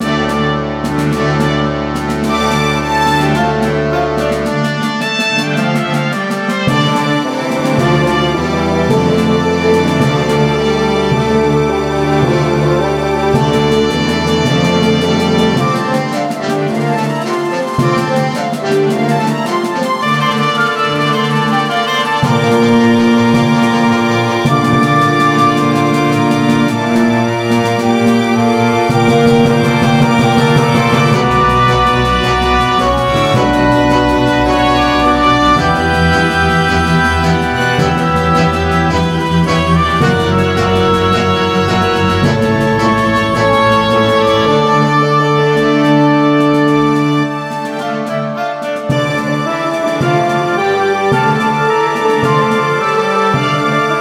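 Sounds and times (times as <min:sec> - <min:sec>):
orchestra playing a sonorous allegretto: 0:00.0 - 0:53.9.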